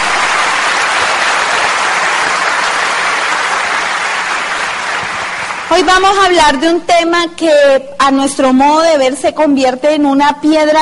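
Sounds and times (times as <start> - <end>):
audience applause: 0.0 - 5.8
speech: 5.7 - 10.7.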